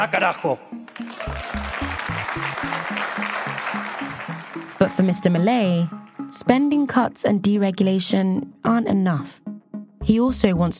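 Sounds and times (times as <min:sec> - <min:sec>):
speech: 0:00.0 - 0:01.5, 0:02.4 - 0:09.4, 0:10.0 - 0:10.7
loud enthusiastic applause from a large crowd: 0:00.9 - 0:05.0.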